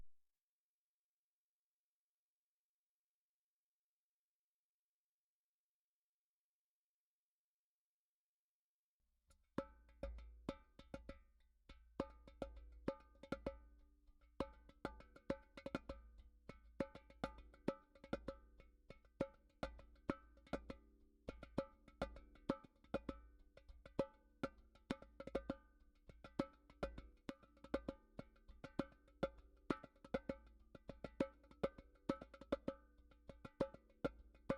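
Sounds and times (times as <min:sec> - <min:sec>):
derbuka drumming: 0:09.6 - 0:34.5.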